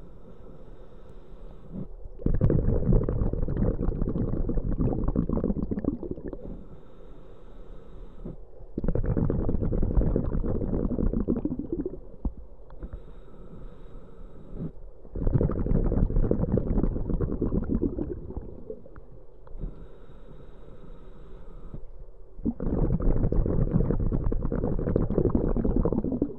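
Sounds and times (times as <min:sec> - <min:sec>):
scuba diver breathing while diving: 0:00.0 - 0:12.1, 0:12.7 - 0:26.3.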